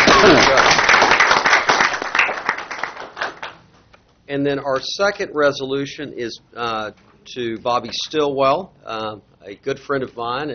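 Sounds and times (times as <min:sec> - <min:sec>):
people applauding the departing chair at a board meeting: 0:00.0 - 0:03.6
speech: 0:04.3 - 0:10.5.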